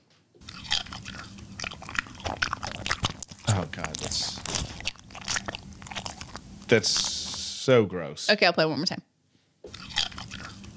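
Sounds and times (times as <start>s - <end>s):
person chewing something crisp: 0.4s - 7.5s, 9.7s - 10.7s
speech: 3.6s - 4.6s, 6.7s - 9.1s.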